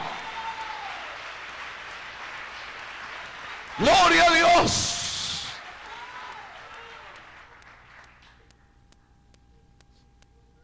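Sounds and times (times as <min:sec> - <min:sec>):
audience applauding: 0:00.0 - 0:08.5
speech: 0:03.8 - 0:05.0.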